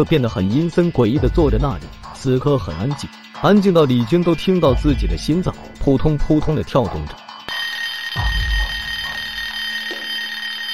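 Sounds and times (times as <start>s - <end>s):
speech: 0.0s - 7.2s
mobile phone ringing: 7.5s - 10.7s.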